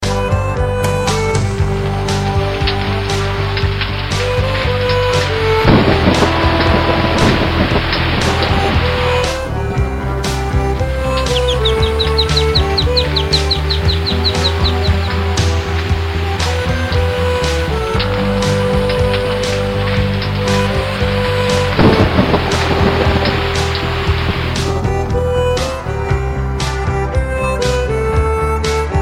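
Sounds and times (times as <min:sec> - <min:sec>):
music of rain: 0:00.0 - 0:29.0.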